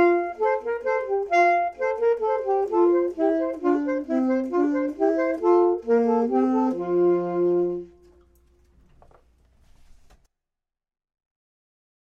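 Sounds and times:
clarinet: 0.0s - 8.7s
saxophone: 0.0s - 8.8s.

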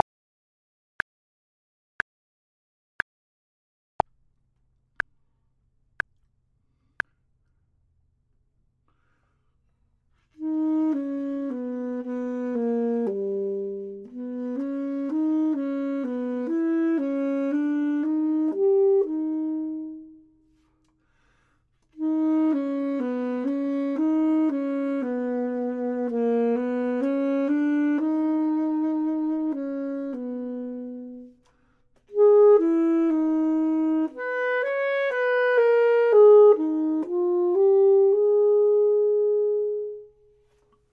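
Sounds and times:
clarinet: 10.2s - 40.9s
saxophone: 10.2s - 40.9s.

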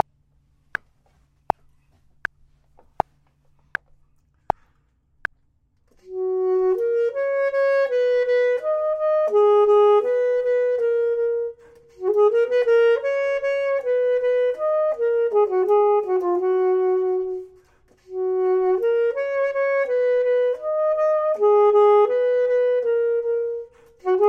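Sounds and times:
clarinet: 5.9s - 24.2s
saxophone: 5.9s - 24.2s.

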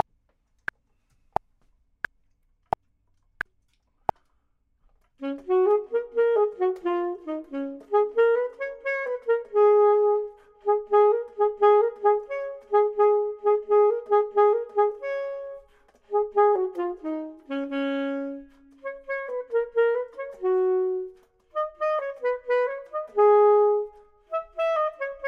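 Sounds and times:
clarinet: 5.2s - 25.2s
saxophone: 5.2s - 25.2s.

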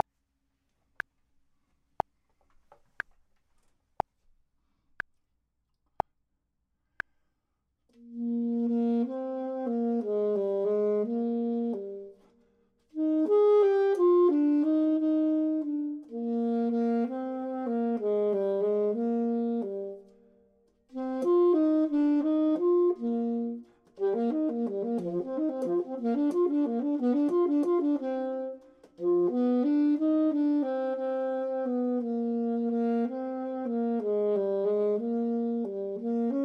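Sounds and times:
clarinet: 8.0s - 36.4s
saxophone: 8.0s - 36.4s.

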